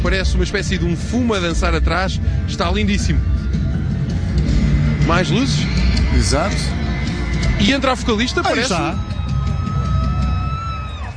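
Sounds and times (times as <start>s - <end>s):
speech: 0.1s - 3.6s, 4.4s - 6.8s, 7.6s - 9.2s
faint sustained tones: 2.1s - 9.2s
concert crowd cheering and roaring as a band starts their set: 3.7s - 11.1s.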